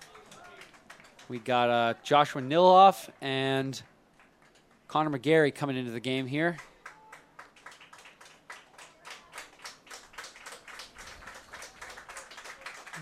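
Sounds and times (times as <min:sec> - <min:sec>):
crowd applause from fans in stands: 0:00.0 - 0:02.5, 0:06.5 - 0:13.0
speech: 0:01.3 - 0:03.9, 0:04.9 - 0:06.7.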